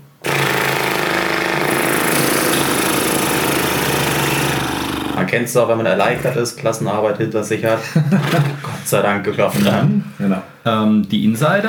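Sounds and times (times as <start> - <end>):
lip trill with vibrating lips: 0.2 - 5.3
speech: 5.3 - 11.6
laughter: 7.7 - 8.9.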